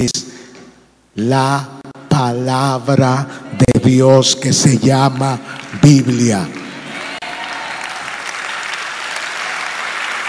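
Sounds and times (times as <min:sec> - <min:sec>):
speech: 0:00.0 - 0:00.3, 0:01.2 - 0:06.6
audience applause: 0:05.2 - 0:10.2.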